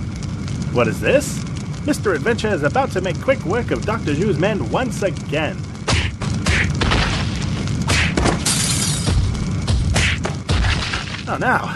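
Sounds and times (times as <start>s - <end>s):
dense rumble: 0.0s - 11.7s
speech: 0.7s - 5.7s, 11.3s - 11.7s
brutes smashing the foundation of a statue: 5.9s - 11.4s.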